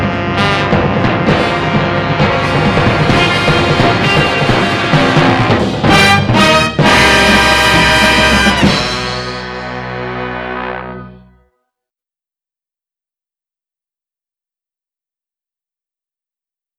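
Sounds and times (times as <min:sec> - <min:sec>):
sound effects: 0:00.0 - 0:11.4
opening theme music: 0:00.0 - 0:11.5.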